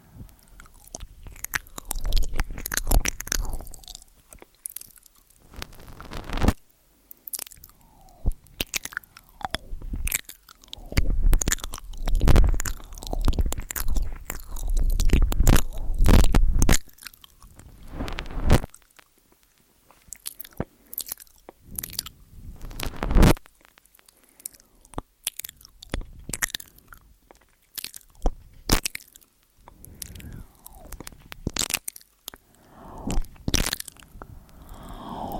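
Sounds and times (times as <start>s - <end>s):
ear eating wet crunchy mouth noises and chewing: 0.2s - 35.3s.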